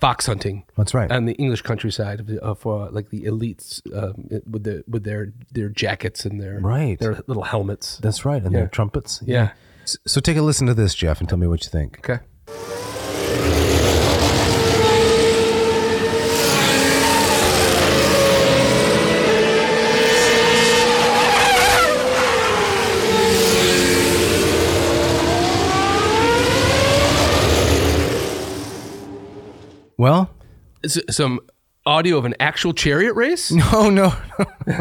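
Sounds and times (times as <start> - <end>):
speech: 0.0 - 12.8, 30.0 - 34.7
Formula One race car engines screaming past: 12.5 - 29.8
laughter: 33.6 - 34.7.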